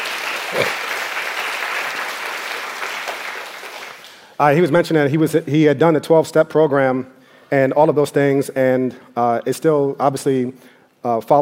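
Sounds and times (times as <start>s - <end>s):
audience clapping: 0.0s - 4.4s
speech: 0.5s - 0.8s, 4.4s - 11.4s.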